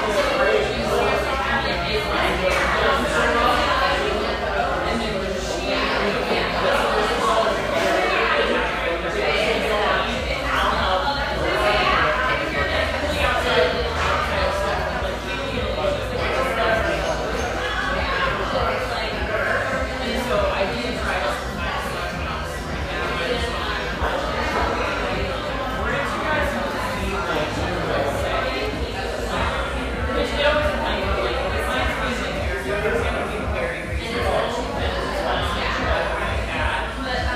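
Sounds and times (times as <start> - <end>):
busy café crowd chatter near Santa Monica pier: 0.0 - 37.3.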